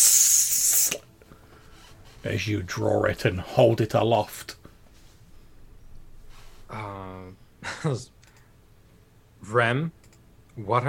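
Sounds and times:
voice imitating rain sizzling on a hot blade: 0:00.0 - 0:01.1
speech: 0:02.2 - 0:04.6, 0:07.8 - 0:08.2, 0:09.5 - 0:10.0, 0:10.6 - 0:10.8.

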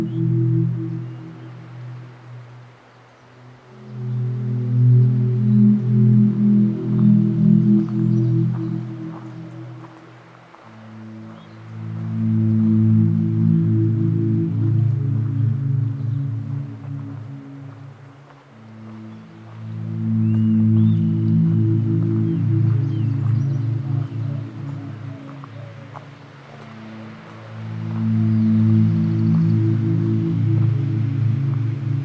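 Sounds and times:
low layered hum at Patagonia Lake State Park in Arizona: 0:00.0 - 0:32.0
faint light ticks: 0:07.8 - 0:11.7, 0:16.8 - 0:28.6.

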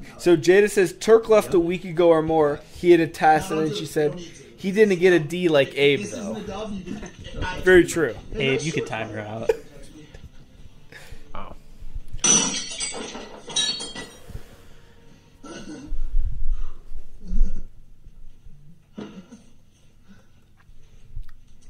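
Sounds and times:
speech: 0:00.2 - 0:09.6
laughter: 0:06.1 - 0:11.1
plate breaking: 0:12.2 - 0:14.2.

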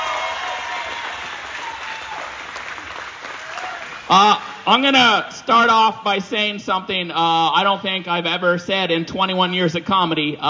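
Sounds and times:
audience applause: 0:00.0 - 0:04.6
speech: 0:04.1 - 0:10.4.

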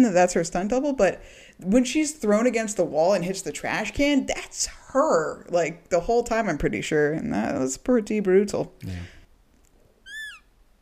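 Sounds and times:
speech: 0:00.0 - 0:09.2
elephant squeak: 0:10.1 - 0:10.5.

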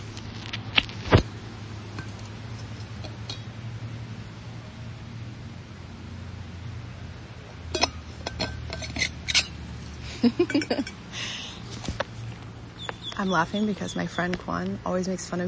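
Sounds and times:
low hum: 0:00.0 - 0:15.4
water bottle lid twisted back on: 0:07.8 - 0:09.6
speech: 0:10.2 - 0:11.0, 0:13.2 - 0:15.4.

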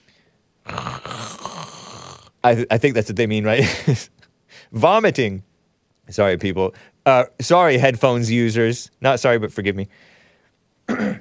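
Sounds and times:
voice imitating snore-like gurgling death rattle: 0:00.7 - 0:02.4
speech: 0:02.4 - 0:05.5, 0:06.1 - 0:10.1, 0:10.9 - 0:11.1.

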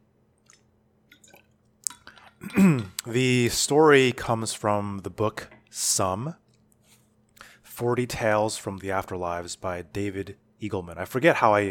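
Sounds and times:
person drinking water: 0:00.4 - 0:03.1
speech: 0:02.5 - 0:06.4, 0:07.8 - 0:11.6.

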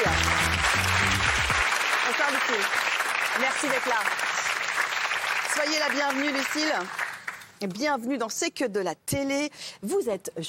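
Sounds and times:
music sting with low sustained tones: 0:00.0 - 0:01.6
audience applause: 0:00.0 - 0:07.4
speech: 0:02.5 - 0:04.3, 0:05.6 - 0:07.0, 0:07.6 - 0:10.4.

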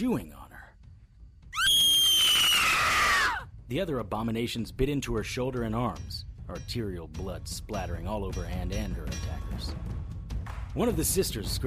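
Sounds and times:
speech: 0:00.0 - 0:00.5, 0:03.7 - 0:09.9, 0:10.8 - 0:11.6
woman screaming: 0:01.5 - 0:03.5.

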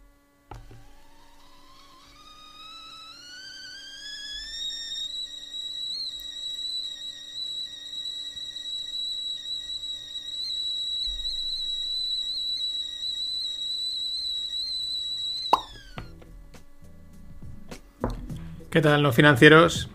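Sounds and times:
tea kettle whistling at full boil: 0:00.1 - 0:19.9
speech: 0:18.8 - 0:19.9.

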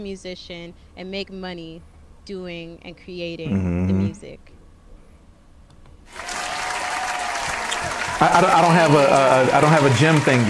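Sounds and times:
speech: 0:00.0 - 0:04.6, 0:08.2 - 0:10.4
applause: 0:06.1 - 0:10.4.

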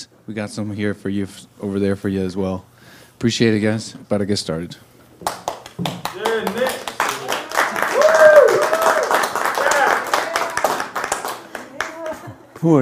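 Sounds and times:
speech: 0:00.3 - 0:06.6, 0:12.6 - 0:12.8
audience clapping: 0:05.2 - 0:12.4.

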